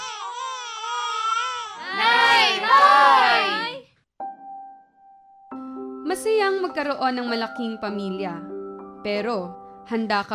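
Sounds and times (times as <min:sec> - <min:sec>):
baby crying: 0:00.0 - 0:03.8
speech: 0:06.4 - 0:10.3.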